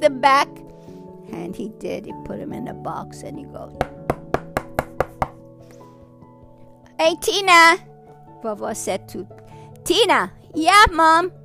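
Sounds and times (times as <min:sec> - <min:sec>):
speech: 0:00.0 - 0:00.6, 0:01.3 - 0:04.2, 0:07.0 - 0:11.4
sharp knocks on a wooden door: 0:03.8 - 0:05.4.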